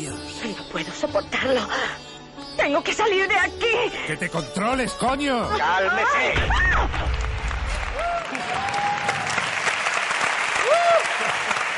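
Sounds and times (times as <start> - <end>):
speech: 0.1 - 7.3
audience applause: 7.0 - 11.7.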